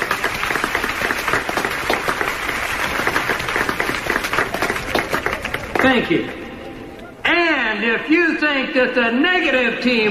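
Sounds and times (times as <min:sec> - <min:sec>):
audience applause: 0:00.0 - 0:06.4
speech: 0:05.8 - 0:06.4, 0:07.8 - 0:10.0.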